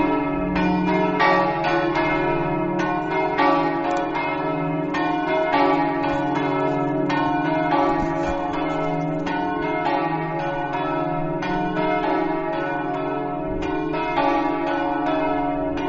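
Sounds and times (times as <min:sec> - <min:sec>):
bells of S Floriano ringing: 0:00.0 - 0:15.8.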